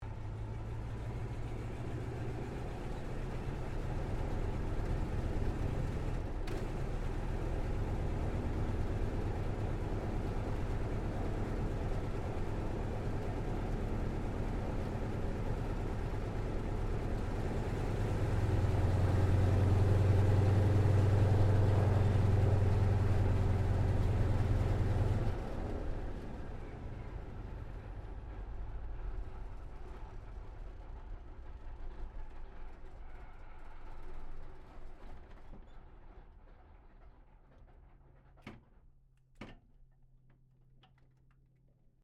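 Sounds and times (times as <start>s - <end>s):
CA-28 Ceres aircraft shutdown heard from interior: 0.1s - 35.8s.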